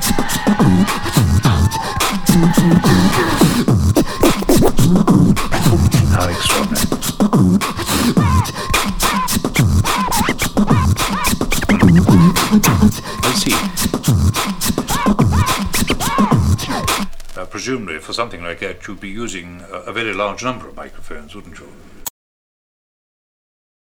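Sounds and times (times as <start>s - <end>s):
drums: 0.0s - 17.6s.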